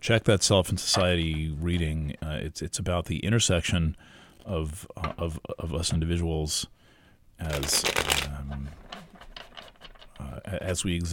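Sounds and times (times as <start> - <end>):
speech: 0.0 - 6.8, 7.4 - 8.9, 10.2 - 11.1
tarot cards being shuffled, a double copy of the Handel Tarot: 7.4 - 8.4.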